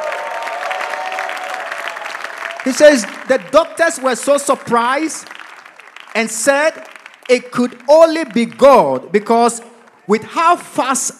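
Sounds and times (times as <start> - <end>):
audience clapping: 0.0 - 10.8
speech: 2.6 - 5.3, 6.1 - 11.1.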